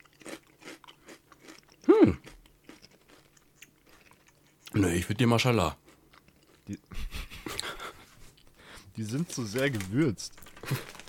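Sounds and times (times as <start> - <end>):
salt and vinegar crisps being crunched: 0.0 - 4.7, 9.0 - 11.0
mouth sounds: 1.8 - 2.4
speech: 4.8 - 5.8, 9.0 - 10.9
laughter: 6.9 - 8.2.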